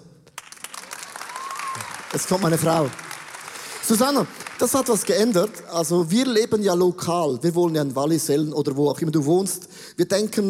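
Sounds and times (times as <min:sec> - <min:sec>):
audience applause: 0:00.4 - 0:05.7
speech: 0:02.1 - 0:03.0, 0:03.9 - 0:10.4.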